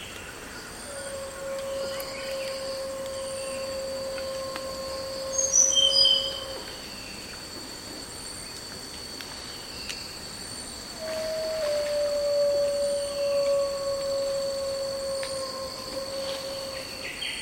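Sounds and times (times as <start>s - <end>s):
black-hooded oriole calling: 0.8s - 6.9s, 10.9s - 17.3s.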